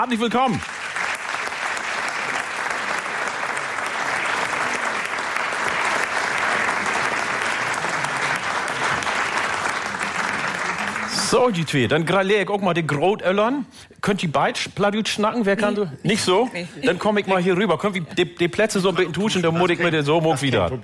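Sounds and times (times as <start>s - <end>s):
speech: 0.0s - 0.8s, 11.3s - 20.8s
large audience clapping steadily and loudly: 0.4s - 12.2s.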